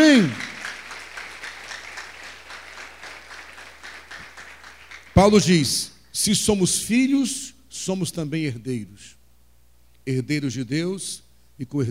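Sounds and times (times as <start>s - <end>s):
speech: 0.0s - 0.4s, 5.2s - 9.2s, 10.0s - 11.8s
audience applause: 0.0s - 5.4s.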